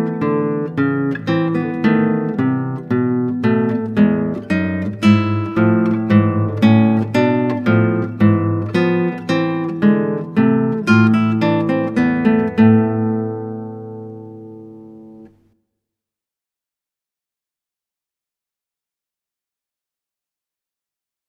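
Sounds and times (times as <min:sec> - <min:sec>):
classical guitar: 0:00.0 - 0:15.6.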